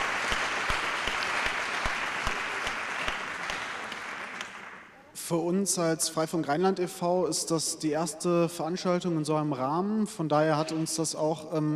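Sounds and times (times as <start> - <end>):
audience applause: 0.0 - 5.1
speech: 5.3 - 11.7.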